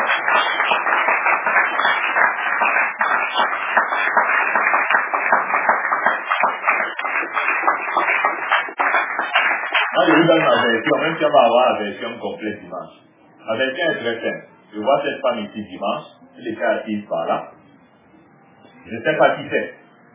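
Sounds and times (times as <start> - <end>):
audience applause: 0.0 - 10.9
speech: 10.3 - 17.5, 18.9 - 19.8.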